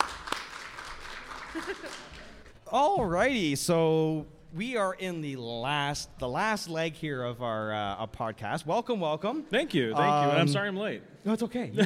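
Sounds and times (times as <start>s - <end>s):
audience applause: 0.0s - 2.6s
speech: 1.6s - 11.8s.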